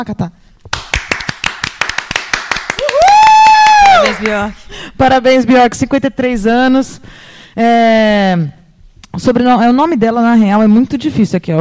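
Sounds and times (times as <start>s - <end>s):
speech: 0.0s - 0.8s, 4.1s - 8.6s, 9.2s - 11.5s
hand clapping: 0.6s - 4.5s.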